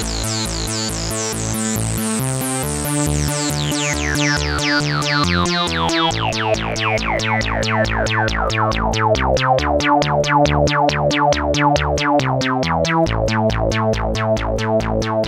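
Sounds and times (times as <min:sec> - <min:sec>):
PAiA 9308 Fatman synthesizer octave sequence: 0:00.0 - 0:15.1.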